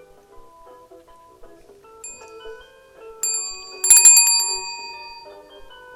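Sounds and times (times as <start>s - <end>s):
telephone ringing: 2.1s - 5.8s.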